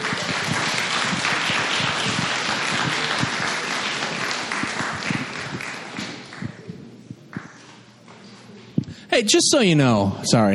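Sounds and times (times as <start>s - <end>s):
audience applauding: 0.0s - 6.9s
speech: 9.2s - 10.5s.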